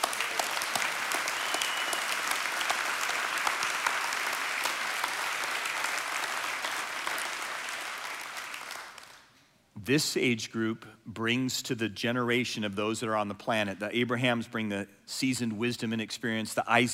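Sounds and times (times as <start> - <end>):
audience applause: 0.0 - 9.3
speech: 9.9 - 16.9.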